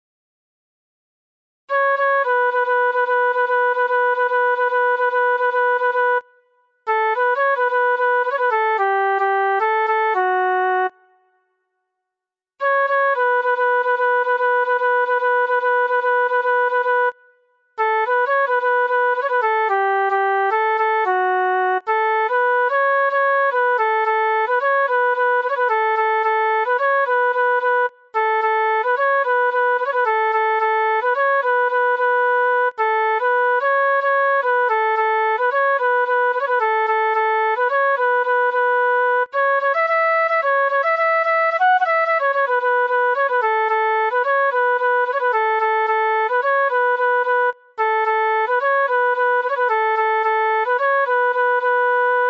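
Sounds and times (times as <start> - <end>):
flute: 1.7 - 11.6, 12.6 - 52.2.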